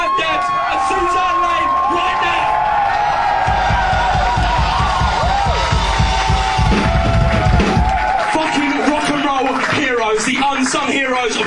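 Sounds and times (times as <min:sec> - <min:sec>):
crowd cheering and whooping: 0:00.0 - 0:10.4
rhythmic clapping or stomping: 0:02.6 - 0:11.4.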